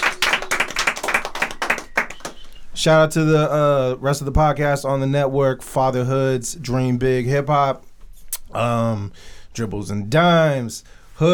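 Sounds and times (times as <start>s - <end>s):
crowd applause: 0.0s - 2.6s
speech: 2.8s - 7.9s, 8.5s - 11.3s.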